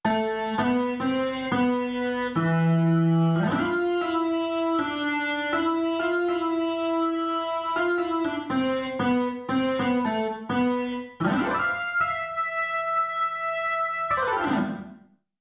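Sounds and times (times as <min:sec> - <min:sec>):
keyboard: 0:00.0 - 0:15.0.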